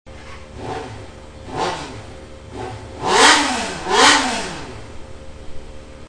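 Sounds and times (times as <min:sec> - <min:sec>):
gixxer motorcycle: 0:00.1 - 0:06.0.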